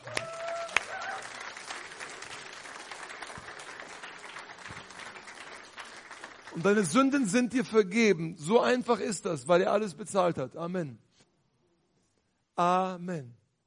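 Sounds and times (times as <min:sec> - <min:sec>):
audience applause: 0:00.0 - 0:07.1
speech: 0:06.6 - 0:11.1, 0:12.6 - 0:13.4.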